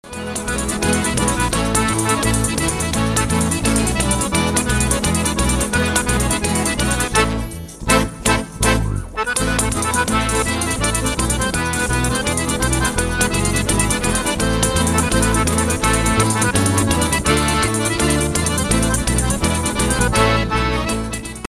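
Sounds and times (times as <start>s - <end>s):
tambourines playing tarantella: 0.1s - 21.4s.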